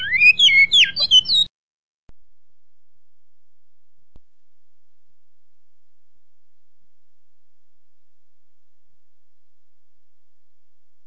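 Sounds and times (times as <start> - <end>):
great-billed seed finch whistling song with buzzy rattle: 0.0 - 1.5.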